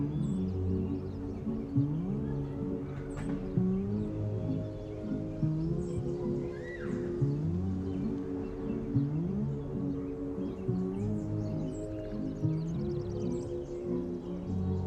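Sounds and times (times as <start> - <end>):
summer oldies music playing in another room: 0.0 - 14.8.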